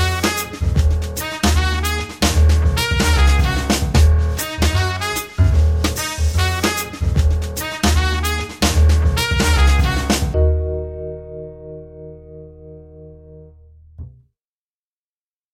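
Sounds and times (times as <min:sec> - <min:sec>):
swing jazz at 150 bpm: 0:00.0 - 0:11.8.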